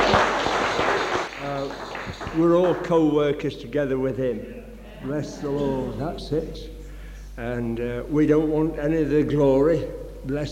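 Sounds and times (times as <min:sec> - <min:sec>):
crowd clapping together: 0:00.0 - 0:03.2
speech: 0:02.4 - 0:06.8, 0:07.4 - 0:10.5.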